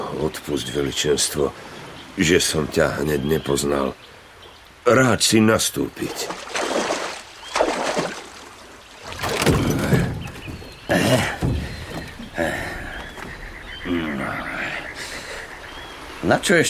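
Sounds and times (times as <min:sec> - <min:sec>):
speech: 0:00.2 - 0:04.2, 0:04.8 - 0:06.5, 0:16.3 - 0:16.6
oars splashing as a small boat is rowed: 0:06.0 - 0:14.1.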